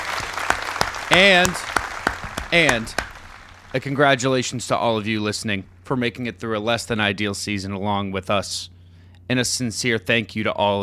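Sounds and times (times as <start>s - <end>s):
round of applause: 0.0s - 4.5s
speech: 1.2s - 1.7s, 2.5s - 3.0s, 3.7s - 10.8s.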